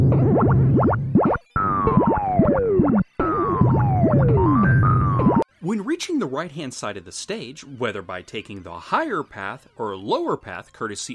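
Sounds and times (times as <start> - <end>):
video game springs bouncing across a platform with boing tones: 0.0 - 5.4
speech: 6.0 - 11.1.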